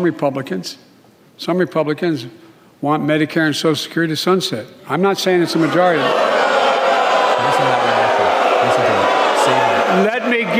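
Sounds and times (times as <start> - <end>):
speech: 0.0 - 6.4
crowd booing a political speech: 5.4 - 10.5
low shouted voices: 5.4 - 10.5.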